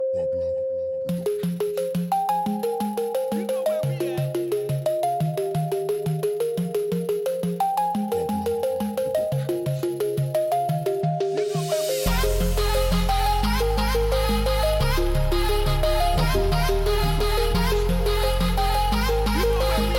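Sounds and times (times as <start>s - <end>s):
pop EDM: 1.1s - 19.9s.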